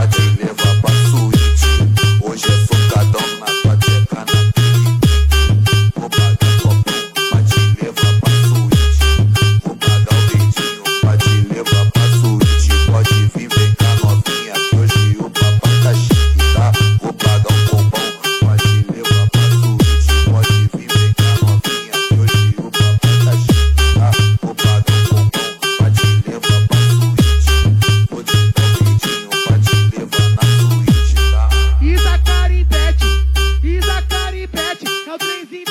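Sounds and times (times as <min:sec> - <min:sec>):
funk bass: 0:00.0 - 0:34.7.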